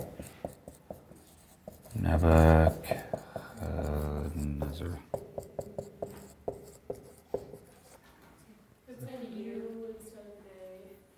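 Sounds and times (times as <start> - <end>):
marker writing a name on a board: 0.0 - 8.1
speech: 2.1 - 3.1.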